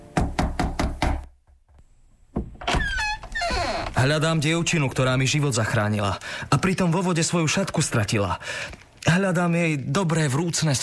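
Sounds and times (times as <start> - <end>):
knocking on a wooden door: 0.1 - 1.4
creaking squeaky sound: 2.6 - 4.0
speech: 4.0 - 10.8.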